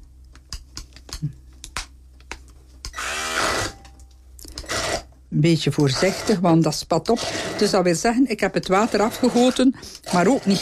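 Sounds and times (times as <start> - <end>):
mixer blending cooked chickpeas: 4.5 - 5.1, 5.8 - 8.0, 8.6 - 10.6
speech: 5.3 - 10.6.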